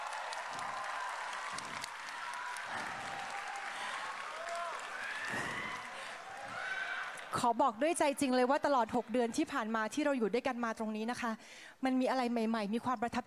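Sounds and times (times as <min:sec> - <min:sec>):
audience applause at a student award ceremony: 0:00.0 - 0:07.4
speech: 0:07.4 - 0:13.2.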